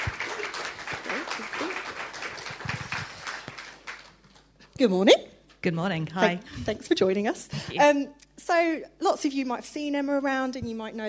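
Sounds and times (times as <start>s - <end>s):
audience applause at a live interview event: 0.0s - 4.5s
speech: 4.8s - 11.0s.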